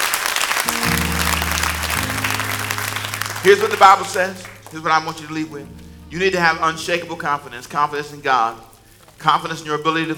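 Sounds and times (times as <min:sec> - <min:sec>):
audience clapping: 0:00.0 - 0:05.9
low keyboard chords: 0:00.6 - 0:10.1
speech: 0:03.4 - 0:10.1.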